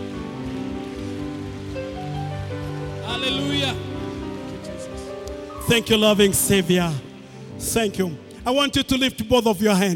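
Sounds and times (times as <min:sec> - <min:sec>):
audience clapping: 0:00.0 - 0:06.4
speech: 0:03.1 - 0:03.9, 0:05.7 - 0:07.0, 0:07.6 - 0:09.9.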